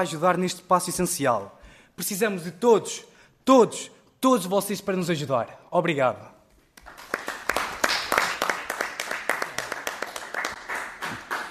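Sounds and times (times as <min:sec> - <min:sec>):
speech: 0:00.0 - 0:06.4
group applauding in a committee hearing: 0:06.7 - 0:11.4.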